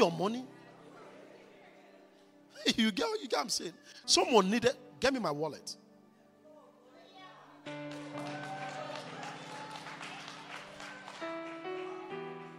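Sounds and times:
speech: 0.0 - 0.6, 2.6 - 5.8
audience clapping: 7.7 - 12.5.

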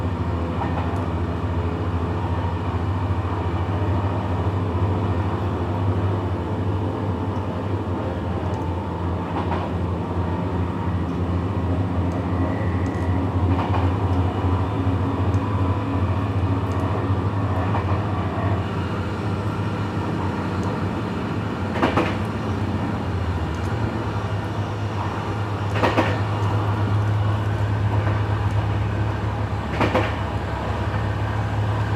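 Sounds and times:
evening train ride with rattling tracks: 0.0 - 31.9
sharp clacks and knocks of rattling tracks: 0.5 - 1.2, 8.3 - 31.9.

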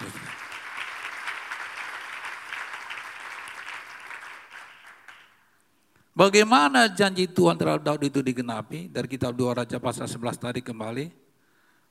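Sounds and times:
applause: 0.0 - 5.6
speech: 6.2 - 11.2.

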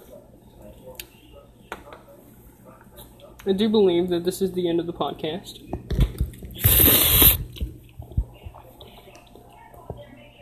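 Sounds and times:
speech: 3.4 - 5.7
person slurping a drink: 6.6 - 7.4.

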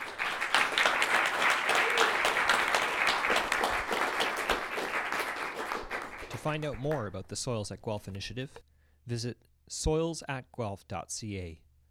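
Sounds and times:
crowd applauding: 0.0 - 7.2
speech: 6.4 - 11.6.

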